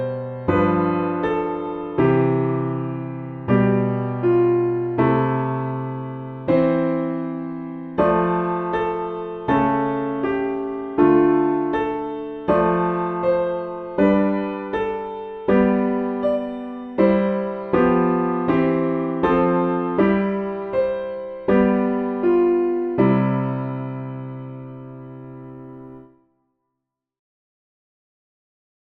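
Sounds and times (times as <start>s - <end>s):
piano backing for recorder hymns: 0.0s - 26.2s.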